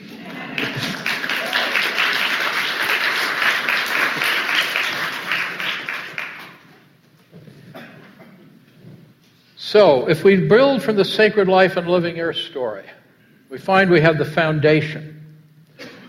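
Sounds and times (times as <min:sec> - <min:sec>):
audience applause: 0:00.0 - 0:06.8
speech: 0:00.6 - 0:01.0, 0:09.7 - 0:15.2.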